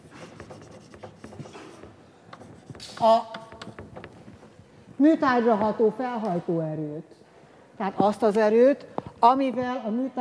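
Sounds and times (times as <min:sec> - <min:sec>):
pen or chalk drawing a pressure diagram on a board: 0:00.0 - 0:04.2
speech: 0:02.9 - 0:03.4, 0:05.0 - 0:07.2, 0:07.8 - 0:10.1.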